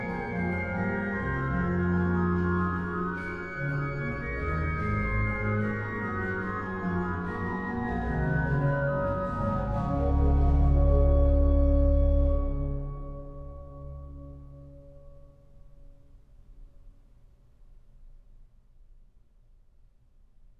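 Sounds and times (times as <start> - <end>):
organ playing a chorale: 0.0 - 14.2.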